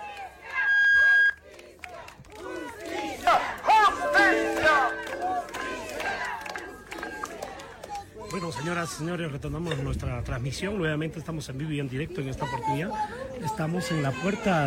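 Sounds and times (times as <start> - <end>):
protest crowd chanting for justice: 1.4 - 8.0
speech: 8.7 - 14.6.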